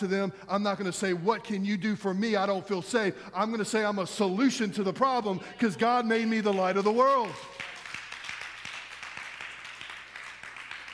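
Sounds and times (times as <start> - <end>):
speech: 0.0 - 7.6
audience clapping: 6.2 - 10.9.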